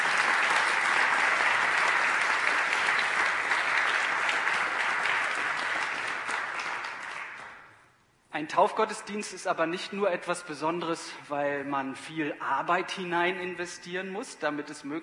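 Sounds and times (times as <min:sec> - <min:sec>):
audience applause: 0:00.0 - 0:07.6
speech: 0:08.4 - 0:15.0.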